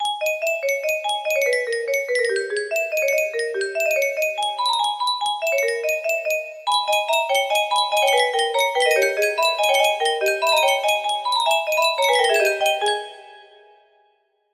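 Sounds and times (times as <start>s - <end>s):
melody pitched five semitones down: 0.0s - 13.8s.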